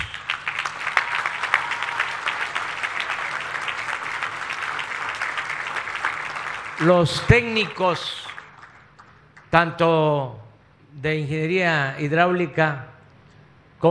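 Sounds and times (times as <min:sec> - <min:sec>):
applause for construction workers: 0:00.0 - 0:09.6
speech: 0:06.8 - 0:08.3, 0:09.5 - 0:10.4, 0:11.0 - 0:12.9, 0:13.8 - 0:13.9.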